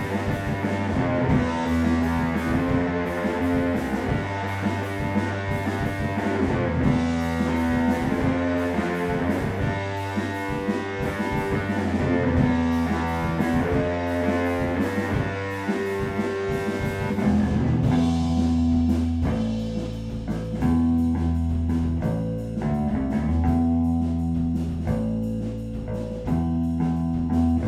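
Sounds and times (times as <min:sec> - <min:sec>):
bass: 0:00.0 - 0:27.6.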